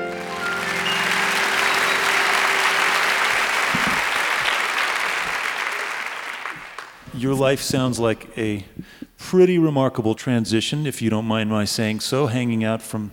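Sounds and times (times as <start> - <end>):
musical tones: 0.0 - 4.5
live stage-show audience applauding to welcome a guest: 0.0 - 7.1
speech: 7.2 - 13.1.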